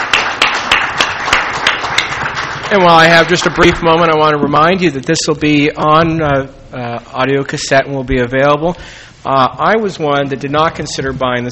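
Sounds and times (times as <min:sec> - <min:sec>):
audience applause after presentations at a meeting: 0:00.0 - 0:04.2
speech: 0:02.7 - 0:11.5.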